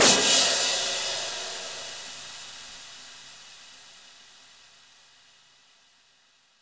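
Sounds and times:
crash impacts: 0.0 - 1.8.

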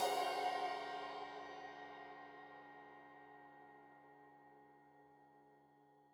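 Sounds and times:
15 inch crash cymbal edge hit: 0.0 - 1.8.

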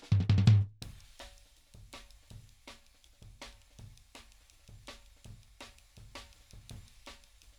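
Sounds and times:
floor tom in jungle beats: 0.1 - 7.5
ride cymbal in jungle beats: 0.8 - 7.5.

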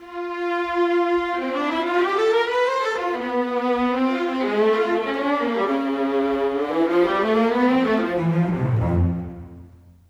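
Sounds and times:
orchestral cello: 0.0 - 10.0
orchestral viola: 0.0 - 10.0
orchestral bass: 6.7 - 10.0.

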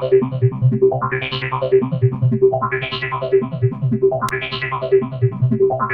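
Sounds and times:
synth and bass loop at 150 bpm: 0.1 - 4.3, 4.9 - 5.8.

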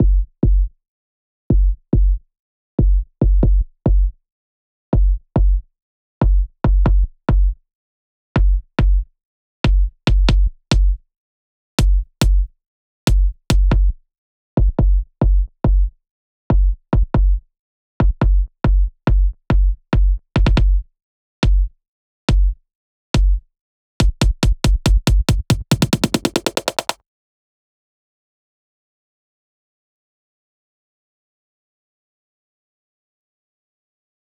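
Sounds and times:
kick drum: 0.0 - 0.7, 1.5 - 2.2, 2.8 - 4.1, 5.0 - 5.6, 6.2 - 7.6, 8.4 - 9.0, 9.7 - 11.0, 11.8 - 12.5, 13.1 - 14.0, 14.6 - 15.9, 16.5 - 17.4, 18.0 - 21.7, 22.3 - 22.6, 23.2 - 23.4, 24.0 - 27.0
intro break drums at 140 BPM: 11.8 - 12.5, 13.1 - 13.9, 20.4 - 20.8, 24.0 - 27.0.

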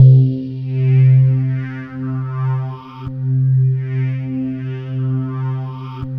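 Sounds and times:
ethereal atmospheric quartz tone: 0.0 - 6.1.

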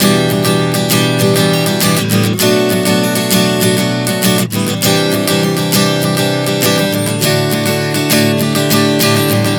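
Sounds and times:
acoustic guitar playing Em7 Bm7 Cadd9 D chord progression: 0.0 - 9.5.

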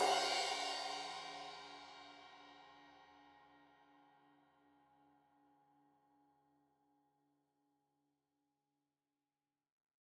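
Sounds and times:
15 inch crash cymbal edge hit: 0.0 - 2.1.

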